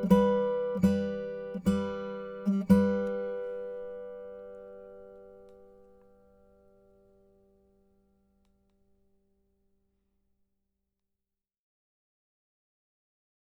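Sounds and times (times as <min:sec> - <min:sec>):
fingerpicked guitars: 0:00.0 - 0:09.5.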